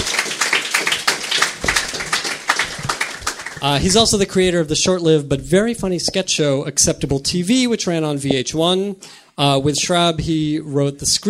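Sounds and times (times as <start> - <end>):
audience applause: 0.0 - 4.2
speech: 3.6 - 11.2.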